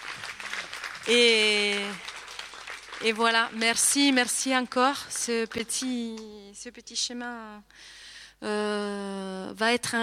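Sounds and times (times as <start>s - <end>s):
crowd clapping: 0.0s - 6.3s
speech: 1.0s - 2.1s, 3.0s - 10.0s.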